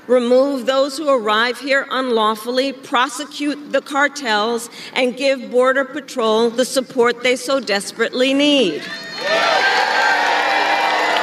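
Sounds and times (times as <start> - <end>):
speech: 0.1 - 9.5
crowd cheering and whooping at a presidential campaign speech: 8.8 - 11.2.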